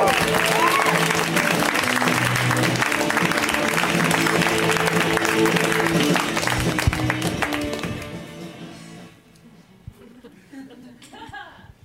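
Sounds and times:
comedy show audience applauding and cheering a comedian: 0:00.0 - 0:08.3
laughter: 0:09.9 - 0:11.8.

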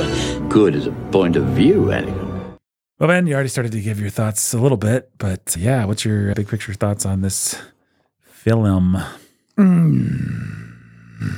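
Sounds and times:
speech: 0:00.5 - 0:02.2, 0:03.0 - 0:07.7, 0:08.4 - 0:10.6, 0:11.2 - 0:11.3
person growling: 0:09.6 - 0:11.3.

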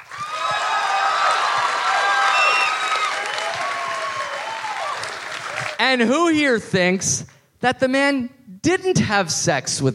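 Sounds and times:
audience applause: 0:00.0 - 0:05.8
speech: 0:05.8 - 0:09.9.

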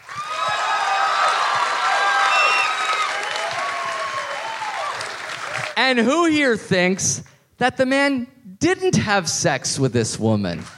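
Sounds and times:
crowd applause: 0:00.0 - 0:05.8
speech: 0:05.9 - 0:10.7.

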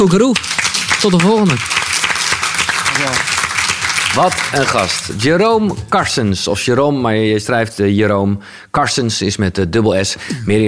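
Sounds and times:
speech: 0:00.0 - 0:01.8, 0:03.0 - 0:03.3, 0:04.1 - 0:10.6
audience applause: 0:00.0 - 0:05.6.

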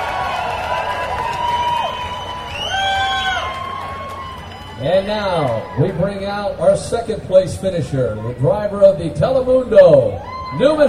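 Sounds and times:
race fans cheering and whooping: 0:00.0 - 0:08.6
speech: 0:04.9 - 0:10.8.

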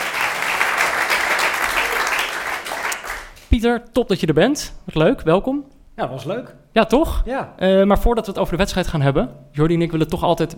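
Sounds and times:
live audience applause: 0:00.0 - 0:03.4
speech: 0:03.5 - 0:10.5.

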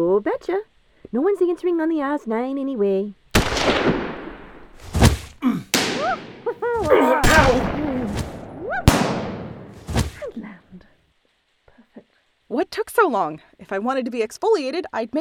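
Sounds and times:
speech: 0:00.0 - 0:04.0, 0:12.5 - 0:15.1
gunshots: 0:03.4 - 0:10.3
thuds: 0:04.7 - 0:10.3.

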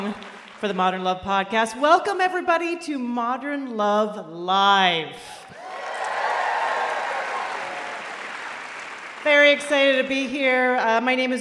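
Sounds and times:
crowd applauding: 0:00.0 - 0:00.8, 0:05.5 - 0:10.1
speech: 0:00.0 - 0:05.5, 0:09.2 - 0:11.3.

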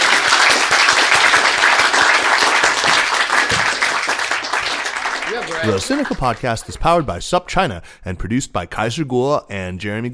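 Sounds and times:
audience applause: 0:00.0 - 0:07.0
speech: 0:05.6 - 0:10.1.

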